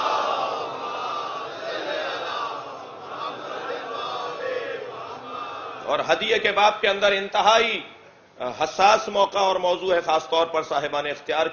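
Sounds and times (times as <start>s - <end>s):
audience loudly reciting salawat together: 0.0s - 5.9s
speech: 5.9s - 11.5s.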